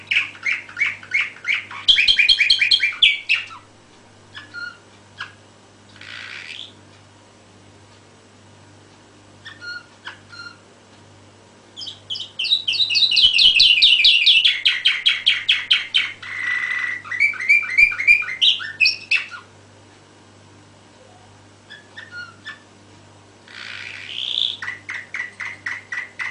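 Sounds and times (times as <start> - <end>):
canary song: 0.0 - 6.9, 9.3 - 10.7, 11.7 - 19.6, 21.0 - 22.8, 23.4 - 26.2.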